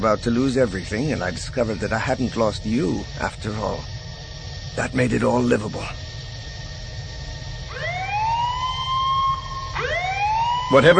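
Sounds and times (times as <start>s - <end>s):
speech: 0.0s - 4.0s, 4.8s - 6.1s, 10.7s - 10.9s
ship alarm blaring: 7.7s - 10.9s.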